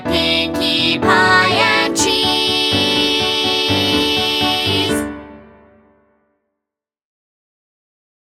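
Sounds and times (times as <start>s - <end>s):
piano: 0.0s - 6.5s.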